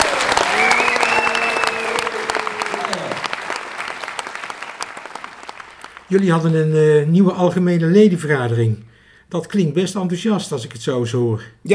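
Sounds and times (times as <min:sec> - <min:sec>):
applause: 0:00.0 - 0:06.8
speech: 0:06.1 - 0:11.7.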